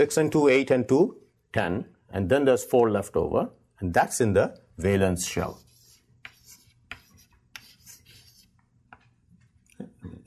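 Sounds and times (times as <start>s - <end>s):
speech: 0.0s - 5.7s
scratchy writing strokes during a chemistry lesson: 5.2s - 9.1s.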